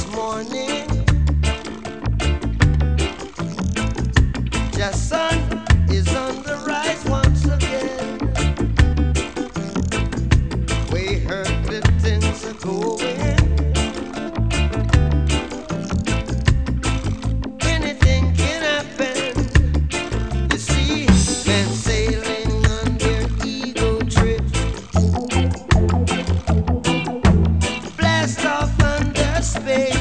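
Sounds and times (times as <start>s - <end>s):
reggae music: 0.0s - 29.9s.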